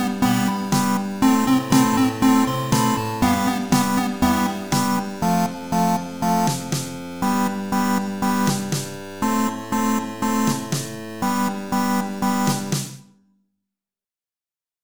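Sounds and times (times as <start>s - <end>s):
electro chiptune music: 0.0s - 13.0s.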